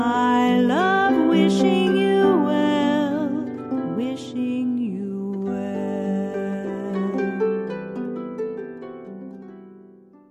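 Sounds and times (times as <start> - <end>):
vocal: 0.0 - 7.7.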